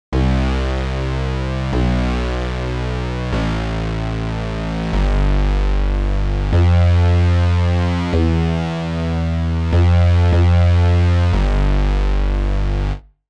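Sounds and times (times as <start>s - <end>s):
bass: 0.1s - 13.2s.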